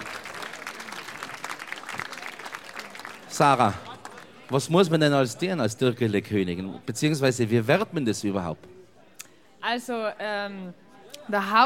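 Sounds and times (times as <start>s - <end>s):
audience applause: 0.0s - 5.2s
crowd noise: 0.0s - 11.6s
speech: 3.3s - 3.9s, 4.5s - 8.7s, 9.7s - 11.6s.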